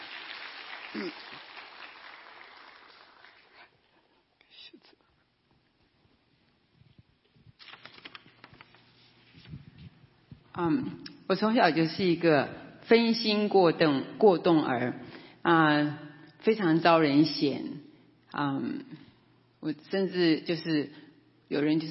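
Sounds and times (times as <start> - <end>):
audience applause welcoming a speaker: 0.0 - 3.4
speech: 0.9 - 1.4, 10.6 - 19.0, 19.6 - 21.9.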